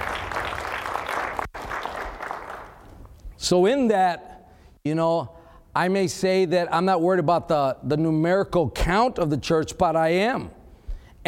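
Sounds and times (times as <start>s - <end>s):
audience clapping: 0.0s - 3.2s
speech: 3.4s - 10.6s.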